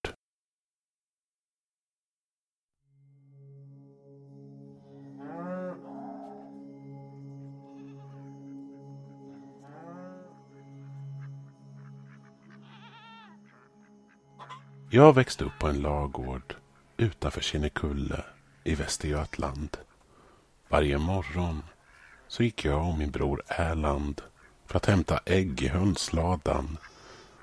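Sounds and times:
cows mooing on a farm: 4.9s - 6.6s, 7.6s - 14.7s
speech: 14.9s - 19.9s, 20.7s - 21.7s, 22.3s - 26.9s.

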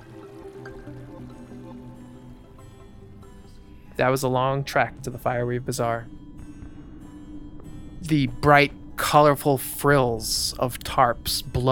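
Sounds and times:
river flowing: 0.0s - 4.0s
speech: 4.0s - 6.2s, 8.1s - 11.7s.

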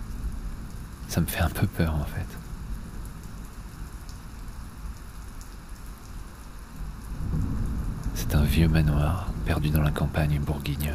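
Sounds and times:
speech: 1.1s - 2.4s, 8.3s - 10.9s
thunderstorm: 6.8s - 10.4s.

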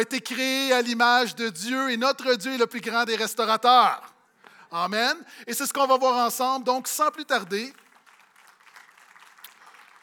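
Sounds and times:
speech: 0.0s - 7.8s
audience applause: 7.7s - 10.0s.

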